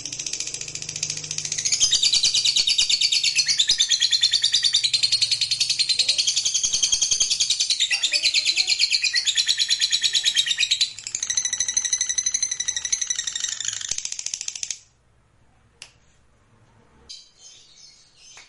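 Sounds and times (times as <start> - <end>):
lovebird shrill trill: 1.3 - 14.0.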